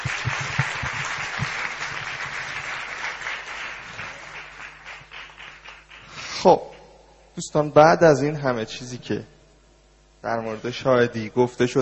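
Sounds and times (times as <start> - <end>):
audience applause at a live show: 0.0 - 6.4
speech: 6.4 - 6.7, 7.4 - 9.4, 10.2 - 11.8.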